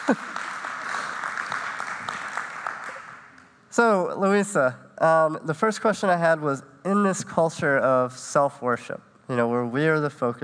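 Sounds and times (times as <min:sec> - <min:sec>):
audience applause: 0:00.0 - 0:03.4
speech: 0:00.1 - 0:00.4, 0:03.8 - 0:10.4.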